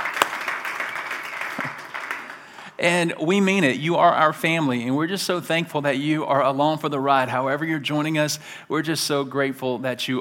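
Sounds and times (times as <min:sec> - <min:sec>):
church congregation at a Civic Center applauding: 0:00.0 - 0:02.8
speech: 0:02.8 - 0:10.1.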